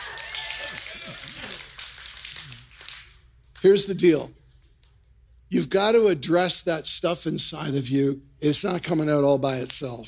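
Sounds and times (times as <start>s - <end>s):
audience clapping: 0.0s - 3.2s
speech: 3.6s - 4.4s, 5.5s - 10.0s.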